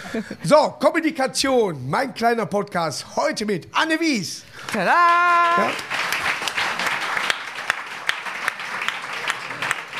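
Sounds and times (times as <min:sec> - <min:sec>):
speech: 0:00.1 - 0:06.0
hand clapping: 0:04.6 - 0:09.9.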